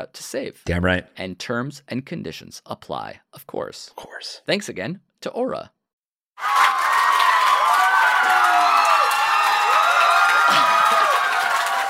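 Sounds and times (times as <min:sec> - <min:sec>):
speech: 0:00.0 - 0:05.8
audience applause: 0:06.4 - 0:11.8.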